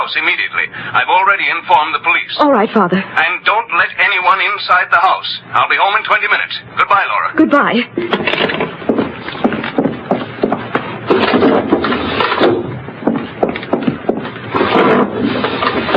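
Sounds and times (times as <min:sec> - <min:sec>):
speech: 0:00.1 - 0:08.7
windows being shut and locked inside a house: 0:08.0 - 0:15.9.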